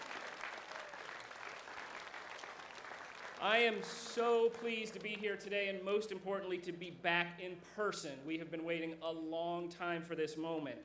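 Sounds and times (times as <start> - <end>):
round of applause: 0.0 - 5.4
speech: 3.4 - 10.8.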